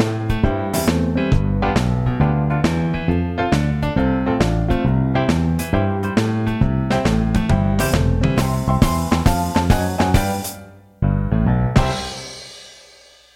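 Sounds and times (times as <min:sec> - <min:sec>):
country shuffle music: 0:00.0 - 0:12.5.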